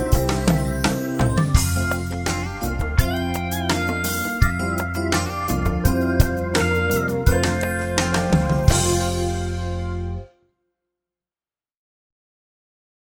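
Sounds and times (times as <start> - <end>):
strings in F major: 0.0 - 10.3.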